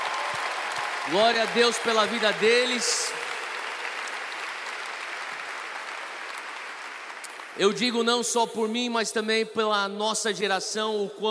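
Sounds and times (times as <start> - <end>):
audience applause: 0.0 - 7.8
speech: 1.1 - 3.2, 7.6 - 11.2.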